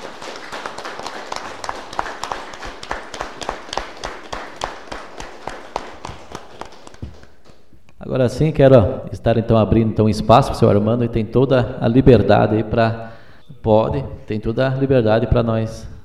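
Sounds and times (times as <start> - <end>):
applause: 0.0 - 7.7
speech: 8.2 - 15.9.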